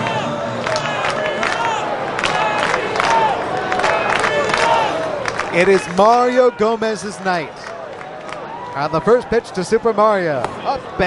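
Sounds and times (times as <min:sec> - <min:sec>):
large stadium crowd cheering: 0:00.0 - 0:11.0
speech: 0:05.6 - 0:07.6, 0:08.8 - 0:11.0.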